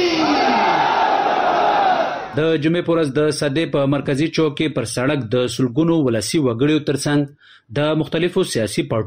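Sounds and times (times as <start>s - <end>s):
crowd chanting slogans at a peace gathering in Sadda, Kurram: 0.2s - 2.3s
speech: 2.4s - 9.0s.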